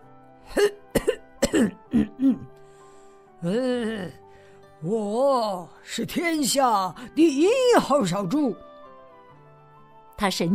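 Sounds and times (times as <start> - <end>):
speech: 0.5 - 0.9, 4.8 - 8.7, 10.2 - 10.5
man clearing throat: 0.5 - 2.5.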